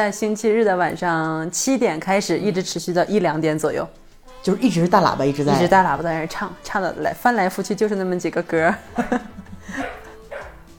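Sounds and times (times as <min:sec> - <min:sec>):
speech: 0:00.0 - 0:10.0
laughter: 0:08.7 - 0:10.4
dog barking: 0:09.7 - 0:10.7.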